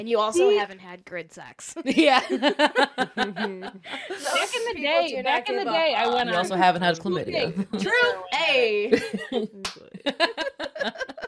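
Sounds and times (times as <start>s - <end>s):
speech: 0.0s - 11.1s
people laughing and chattering: 1.9s - 11.2s
hands clapping: 9.6s - 9.9s.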